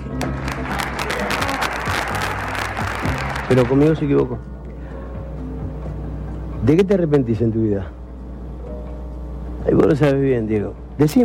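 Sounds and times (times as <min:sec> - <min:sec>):
audience applause: 0:00.0 - 0:04.0
speech: 0:03.5 - 0:04.6, 0:06.6 - 0:08.0, 0:09.6 - 0:11.2.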